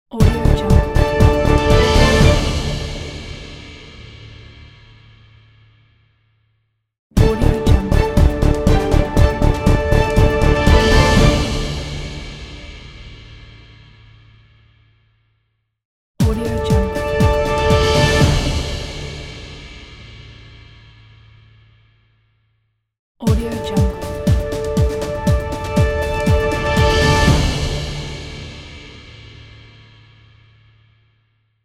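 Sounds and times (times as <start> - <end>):
Breaking News intro music: 0.2 - 3.6, 7.2 - 12.8, 16.2 - 19.6, 23.3 - 29.0.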